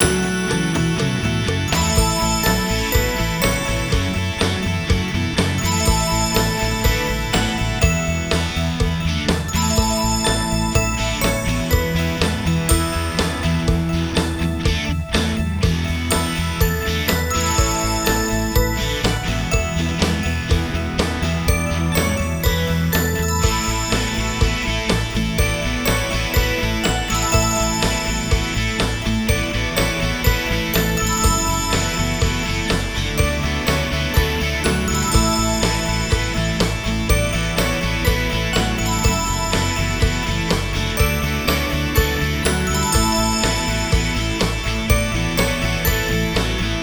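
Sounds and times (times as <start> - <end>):
music loops: 0.0 - 46.8.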